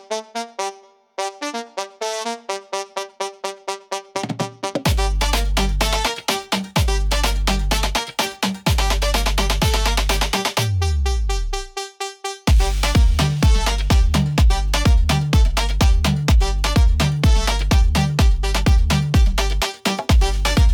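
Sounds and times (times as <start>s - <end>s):
Latin dance beat: 4.1s - 11.8s, 12.5s - 20.7s.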